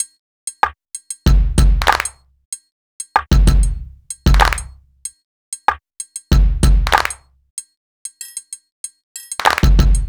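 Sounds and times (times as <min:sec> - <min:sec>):
urban drum beat: 0:01.3 - 0:02.2, 0:03.2 - 0:04.8, 0:05.7 - 0:07.2, 0:09.4 - 0:10.0.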